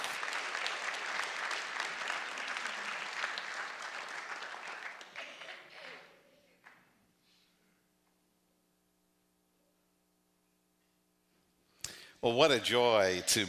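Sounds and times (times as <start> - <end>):
church congregation applauding to welcome a guest preacher: 0.0 - 6.8
speech: 12.2 - 13.4.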